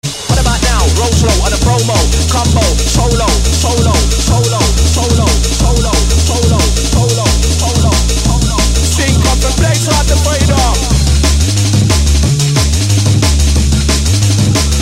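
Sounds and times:
drum and bass music: 0.0s - 14.8s.

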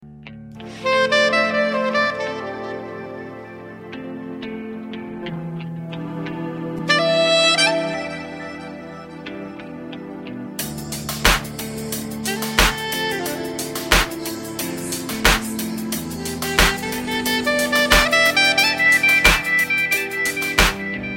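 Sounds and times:
saxophone: 0.6s - 21.1s.

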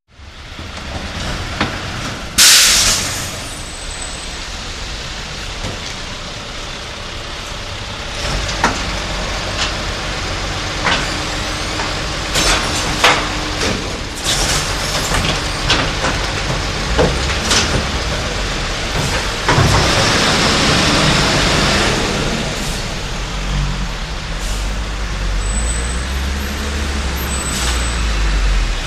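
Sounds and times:
bus noise: 0.1s - 28.8s.

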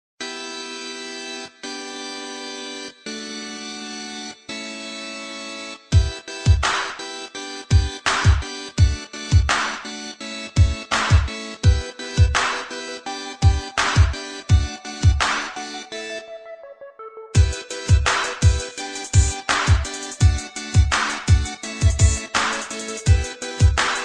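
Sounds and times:
catchy beat: 6.0s - 7.1s, 7.7s - 15.9s, 17.4s - 24.0s.

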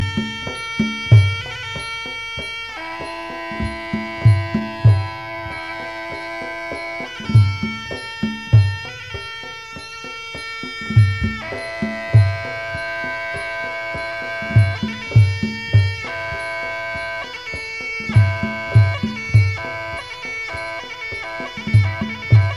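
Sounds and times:
meditation music: 0.0s - 22.5s.

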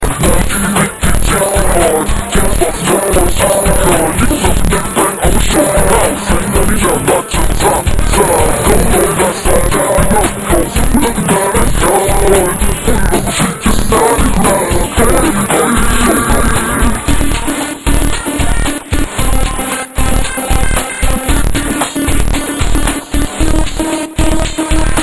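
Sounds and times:
rap music: 0.0s - 25.0s.

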